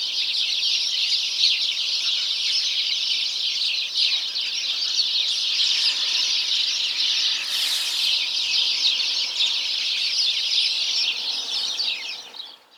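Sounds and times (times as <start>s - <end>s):
house sparrow flock chirping: 0.2s - 12.7s
hissing burst: 5.8s - 8.7s.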